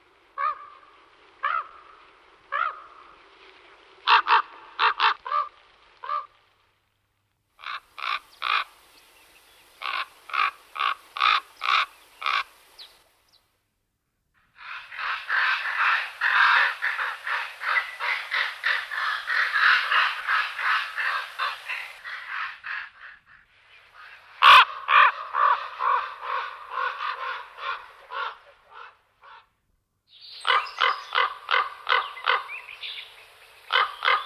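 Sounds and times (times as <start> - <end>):
common raven croaking and cawing: 0.4 - 3.2, 4.0 - 6.4, 7.5 - 8.8, 9.8 - 12.6, 14.4 - 29.6, 30.4 - 32.6, 33.7 - 34.2.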